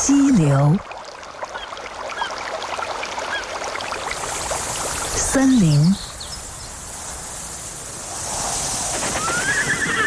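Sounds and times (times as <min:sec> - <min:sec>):
open grassland outdoor ambience: 0:00.0 - 0:10.0
speech: 0:00.1 - 0:00.9, 0:05.3 - 0:06.0
horse whinnying: 0:09.2 - 0:10.0.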